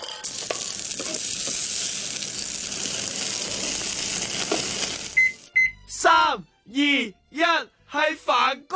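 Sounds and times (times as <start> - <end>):
cake pan-frying in a hot pan: 0.3 - 5.5
speech: 6.3 - 8.6.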